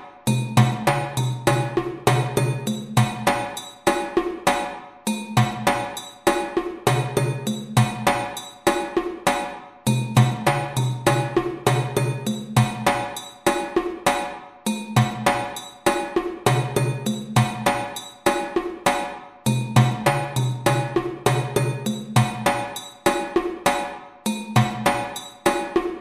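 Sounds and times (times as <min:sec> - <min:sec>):
djembe groove at 100 bpm: 0:00.0 - 0:26.0.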